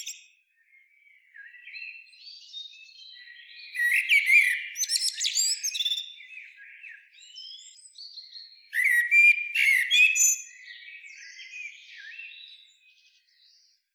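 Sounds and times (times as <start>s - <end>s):
Eurasian blackbird Turdus merula low fluted whistles: 3.8s - 6.0s, 8.7s - 10.6s.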